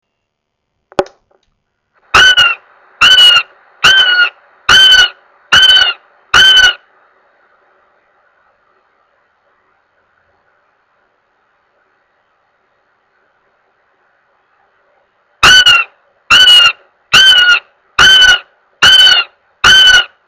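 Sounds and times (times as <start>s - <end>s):
goshawk giving harsh level wailing notes: 2.1s - 6.9s, 15.4s - 20.2s.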